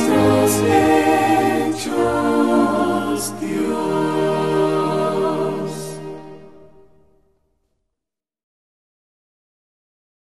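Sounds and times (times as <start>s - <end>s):
vocal and instrumental music: 0.0s - 7.0s.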